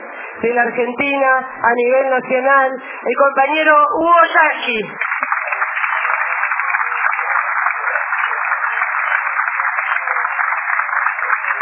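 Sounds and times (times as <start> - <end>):
speech: 0.4 - 5.1
welcoming applause from a crowd: 5.0 - 11.6.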